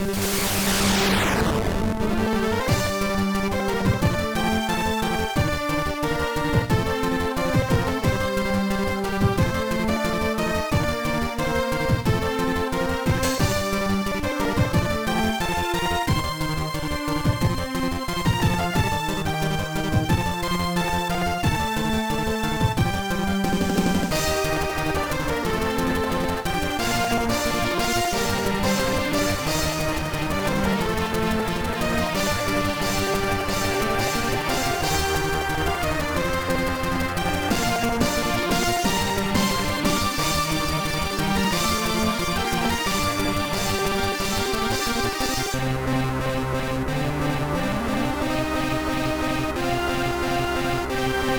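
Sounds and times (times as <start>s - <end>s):
battle music: 0.0s - 51.3s.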